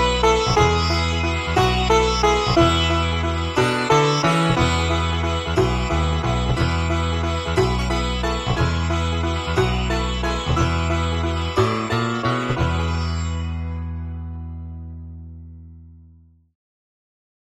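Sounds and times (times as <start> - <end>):
tabla: 0.0 - 15.1
virtual sitar: 0.0 - 15.7.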